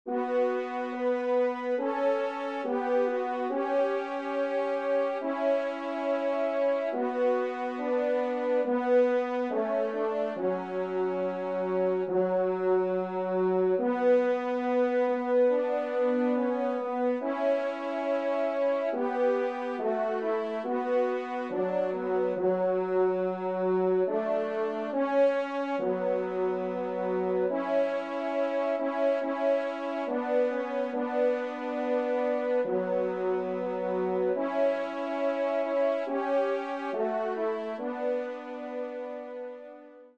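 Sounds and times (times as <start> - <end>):
trompe playing: 0.1 - 39.9.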